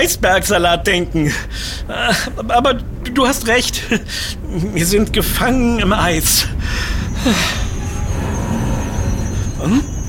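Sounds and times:
speech: 0.0s - 7.6s, 9.6s - 10.0s
train braking to a stop: 3.6s - 10.0s.

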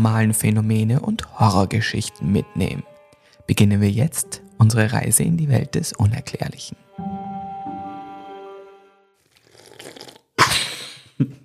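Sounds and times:
speech: 0.0s - 2.9s, 3.5s - 7.2s, 11.2s - 11.4s
person slurping a drink: 9.2s - 11.0s.

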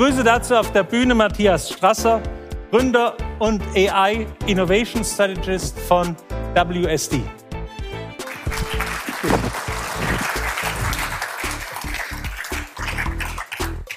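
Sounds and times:
speech: 0.0s - 7.4s
audience applause: 8.2s - 13.9s.

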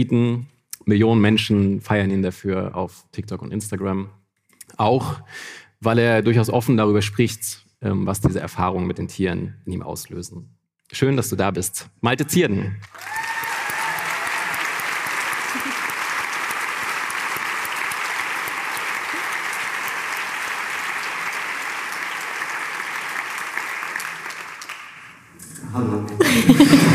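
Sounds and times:
speech: 0.0s - 4.2s, 4.8s - 13.1s
audience applause: 12.8s - 25.3s
laughter: 15.3s - 16.1s, 26.1s - 26.9s.

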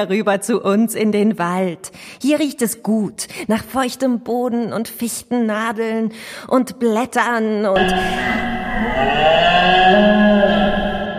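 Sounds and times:
speech: 0.0s - 10.6s
red deer stag bellowing: 7.8s - 11.1s.

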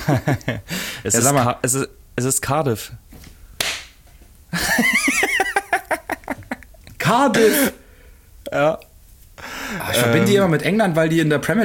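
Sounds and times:
rhythmic bursts of laughter: 0.0s - 0.7s, 4.5s - 6.8s
speech: 0.0s - 3.1s, 7.1s - 7.8s, 8.5s - 8.9s, 9.9s - 11.6s
hand slapping forehead: 3.2s - 4.0s.

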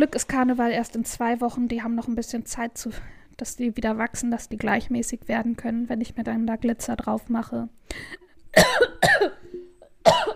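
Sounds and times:
speech: 0.0s - 8.9s
harsh coughs after swallowing the wrong way: 8.6s - 10.3s.

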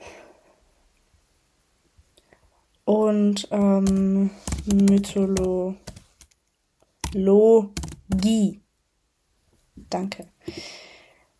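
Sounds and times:
speech: 2.9s - 5.9s, 7.1s - 8.6s, 9.9s - 10.8s
typing on a computer keyboard: 3.4s - 6.4s, 7.0s - 8.5s.

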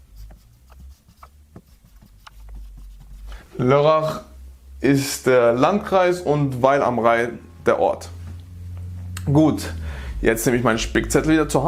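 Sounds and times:
pen writing notes by hand: 0.2s - 3.3s
speech: 3.6s - 8.2s, 9.3s - 11.6s.

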